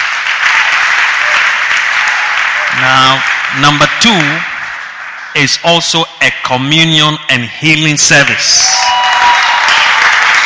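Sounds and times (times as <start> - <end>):
loud audience applause: 0.0 - 5.4, 8.2 - 10.4
speech: 2.8 - 4.5, 5.3 - 8.7.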